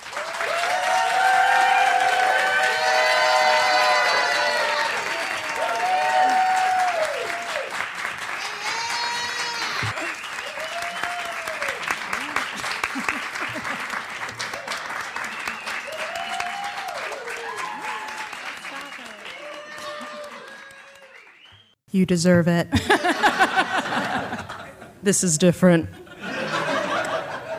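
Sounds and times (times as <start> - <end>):
audience applause at a library author event: 0.0 - 21.7
laughter: 11.4 - 15.6, 22.7 - 25.0, 25.9 - 27.5
speech: 22.0 - 23.3, 25.0 - 26.0.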